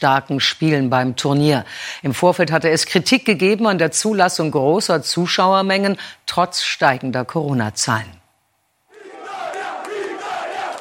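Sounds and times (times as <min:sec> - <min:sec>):
speech: 0:00.0 - 0:08.2
Italian football fans cheering and chanting in stadium: 0:08.9 - 0:10.7.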